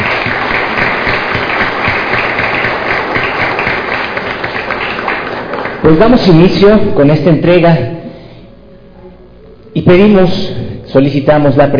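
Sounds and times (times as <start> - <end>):
audience applause: 0.0 - 6.4
speech: 5.9 - 8.0, 9.8 - 11.7.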